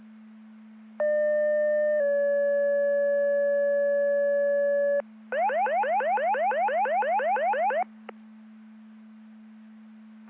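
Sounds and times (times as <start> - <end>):
siren: 1.0 - 7.9.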